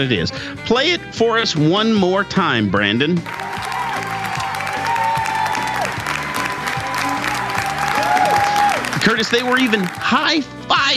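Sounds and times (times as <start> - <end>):
speech: 0.0 - 3.4, 9.1 - 10.9
legislature chamber crowd applauding: 3.2 - 10.4.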